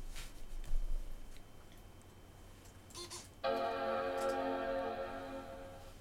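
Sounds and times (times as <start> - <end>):
13-inch MacBook Pro startup chime: 3.4 - 5.9.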